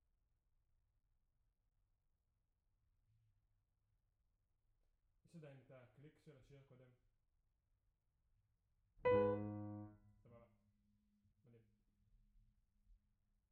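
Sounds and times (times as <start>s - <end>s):
piano note B: 9.1s - 10.0s.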